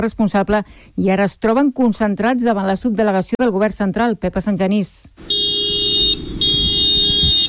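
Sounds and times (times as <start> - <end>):
speech: 0.0 - 5.4
tractor horn blasts at farmers' protest: 5.3 - 7.4.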